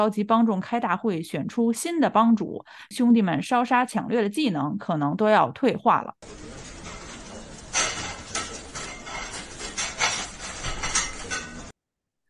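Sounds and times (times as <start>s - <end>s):
speech: 0.0s - 6.6s
dishes and cutlery clattering as they are washed in a kitchen: 6.3s - 11.7s.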